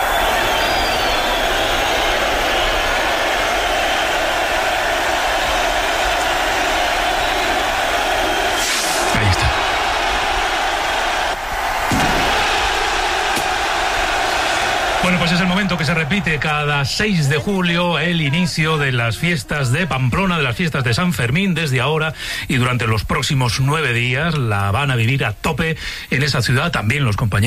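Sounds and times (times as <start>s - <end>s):
festival crowd: 0.0s - 22.0s
chupinazo rocket blast: 11.8s - 13.7s
speech: 15.5s - 27.4s.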